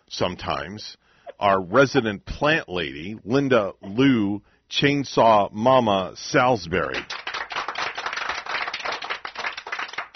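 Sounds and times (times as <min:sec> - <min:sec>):
speech: 0:00.1 - 0:07.2
studio audience applause sound effect: 0:07.1 - 0:10.1.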